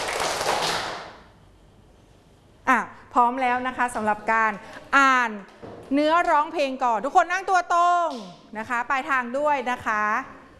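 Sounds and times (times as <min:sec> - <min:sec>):
single hand clap: 0:00.0 - 0:01.2
speech: 0:03.1 - 0:10.4.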